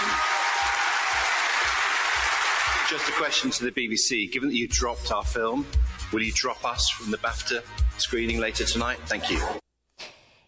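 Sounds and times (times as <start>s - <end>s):
audience applause at an award ceremony: 0.0s - 3.5s
speech: 2.9s - 9.6s.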